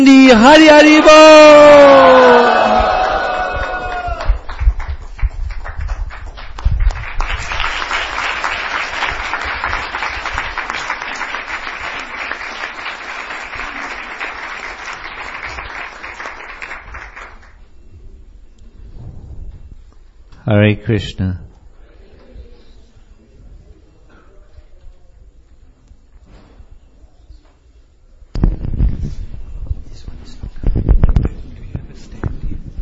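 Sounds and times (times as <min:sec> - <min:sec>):
speech: 0:00.0 - 0:02.6, 0:20.6 - 0:21.4
crowd shouting greeting: 0:00.0 - 0:04.4
crowd applauding: 0:00.5 - 0:17.6.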